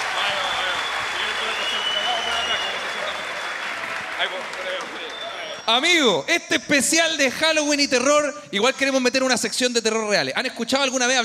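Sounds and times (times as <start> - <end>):
applause for the team: 0.0 - 6.0
speech: 5.7 - 11.2.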